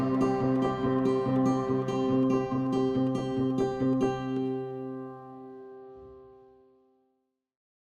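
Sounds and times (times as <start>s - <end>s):
inspirational music: 0.0s - 6.2s.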